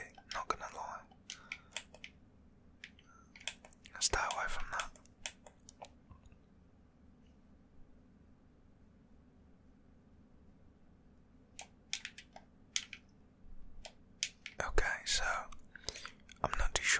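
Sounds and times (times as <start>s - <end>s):
low steady hum: 0.0s - 16.9s
game controller buttons clicking: 1.1s - 2.2s, 2.8s - 5.9s, 11.6s - 13.0s, 13.8s - 14.6s.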